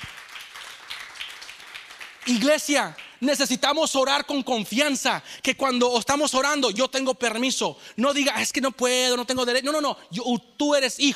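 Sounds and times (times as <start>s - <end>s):
audience applause: 0.0s - 3.1s
speech: 2.3s - 11.1s.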